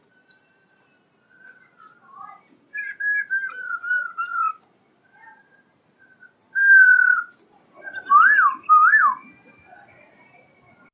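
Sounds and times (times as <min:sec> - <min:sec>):
laughingthrush whistling: 0:02.7 - 0:10.1.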